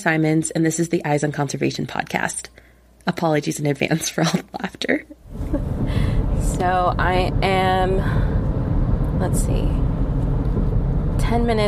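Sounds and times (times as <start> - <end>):
speech: 0.0 - 8.4, 9.2 - 10.0, 11.2 - 11.6
car road rumble on a drive from Tahoe to San Francisco: 5.2 - 11.6.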